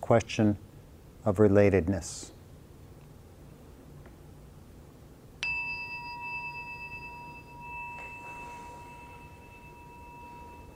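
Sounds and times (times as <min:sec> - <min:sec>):
low hum: 0:00.0 - 0:10.7
speech: 0:00.1 - 0:02.4
meditation bell ringing: 0:05.4 - 0:10.7.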